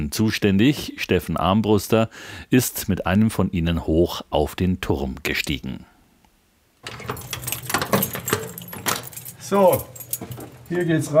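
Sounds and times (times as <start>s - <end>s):
speech: 0.0s - 5.9s, 9.5s - 10.0s, 10.7s - 11.1s
keys jangling in a heavy cast-iron door lock: 6.8s - 11.1s.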